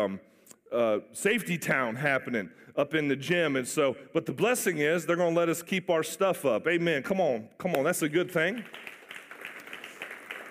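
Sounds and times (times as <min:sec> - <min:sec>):
speech: 0:00.0 - 0:09.0
setup and teardown team clapping: 0:08.1 - 0:10.4.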